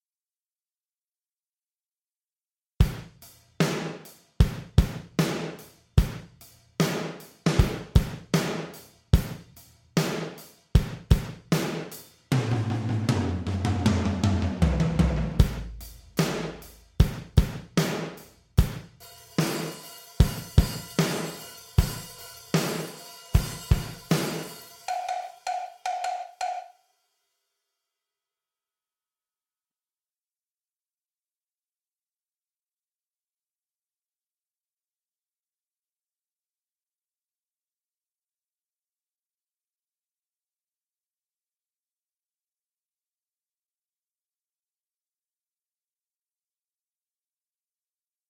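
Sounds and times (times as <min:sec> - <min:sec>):
gated black drum kit: 0:02.8 - 0:26.7.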